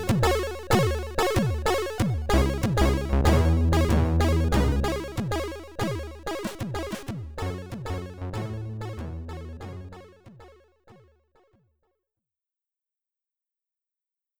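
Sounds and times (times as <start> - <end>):
SID stereo chiptune music: 0.0 - 10.6.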